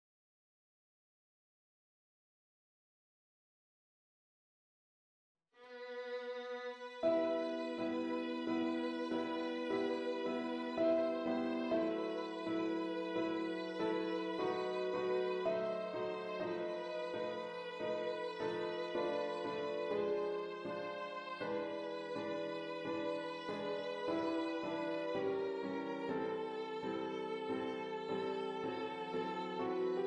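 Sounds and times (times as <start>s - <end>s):
prelude piece in E minor: 6.3s - 30.0s.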